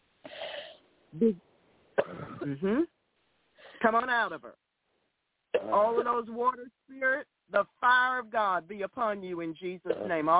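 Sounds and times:
speech: 0:01.2 - 0:01.5, 0:02.1 - 0:02.9, 0:03.8 - 0:04.7, 0:05.5 - 0:10.3
deep cough from the gut: 0:02.0 - 0:02.7, 0:09.9 - 0:10.2.

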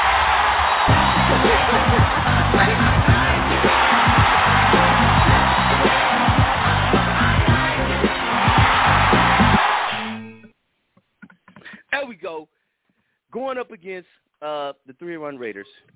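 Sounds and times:
crowd cheering sound effect: 0:00.0 - 0:10.5
speech: 0:13.9 - 0:15.9.

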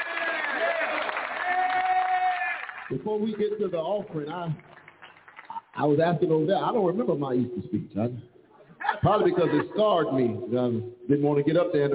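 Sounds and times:
audience applause for children: 0:00.0 - 0:03.0
speech: 0:02.9 - 0:04.7, 0:05.8 - 0:08.3, 0:09.0 - 0:11.9
laughter: 0:08.8 - 0:10.3.

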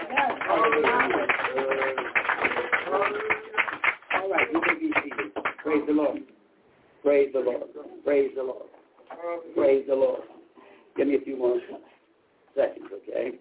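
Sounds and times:
audience clapping: 0:00.0 - 0:06.0
speech: 0:07.2 - 0:10.3, 0:11.0 - 0:12.0, 0:12.6 - 0:13.3.

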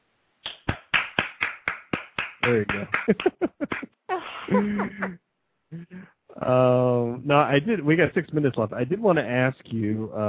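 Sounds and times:
hand clap: 0:00.4 - 0:03.9
speech: 0:02.4 - 0:10.2
laughter: 0:02.5 - 0:05.2.

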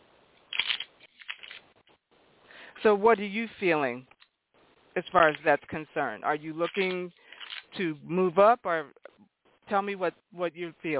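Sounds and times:
playing cards shuffling: 0:00.5 - 0:02.0, 0:06.6 - 0:07.7
speech: 0:02.8 - 0:04.1, 0:05.0 - 0:09.0, 0:09.7 - 0:10.9.

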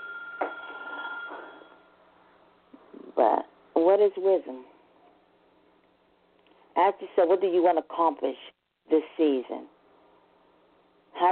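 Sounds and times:
telephone ringing: 0:00.0 - 0:01.9
speech: 0:03.2 - 0:04.7, 0:06.8 - 0:09.7.

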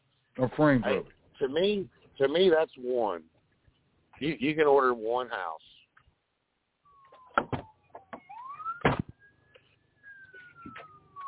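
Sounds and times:
speech: 0:00.4 - 0:03.3, 0:04.2 - 0:05.7
fire truck siren wailing: 0:06.9 - 0:11.2.

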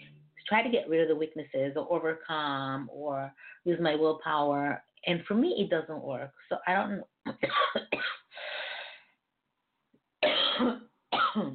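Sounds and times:
speech: 0:00.5 - 0:08.2, 0:10.6 - 0:10.8
person coughing: 0:07.3 - 0:08.3, 0:10.2 - 0:11.5.

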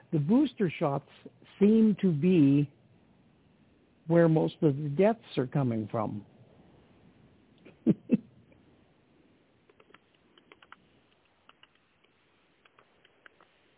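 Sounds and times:
speech: 0:00.1 - 0:02.8, 0:04.1 - 0:06.3, 0:07.9 - 0:08.2
typing on a computer keyboard: 0:09.7 - 0:13.6.

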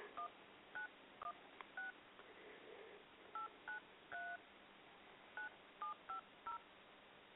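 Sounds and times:
touch-tone telephone dialing beeps: 0:00.2 - 0:02.0, 0:03.4 - 0:04.4, 0:05.4 - 0:06.6.

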